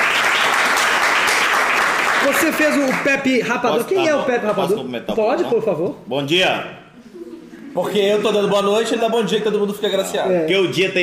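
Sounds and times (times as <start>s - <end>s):
applause: 0.0s - 3.4s
speech: 2.3s - 7.1s, 7.7s - 11.0s
laughter: 7.0s - 9.1s.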